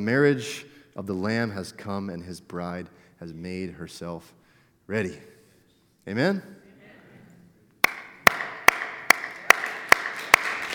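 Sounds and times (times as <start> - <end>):
speech: 0.0 - 5.4, 6.0 - 6.6
audience applause: 7.8 - 10.7.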